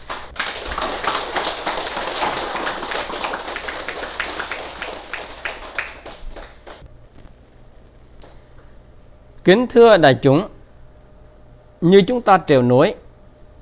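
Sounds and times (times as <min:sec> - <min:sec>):
audience applause: 0:00.0 - 0:06.8
speech: 0:09.5 - 0:10.5, 0:11.8 - 0:13.0.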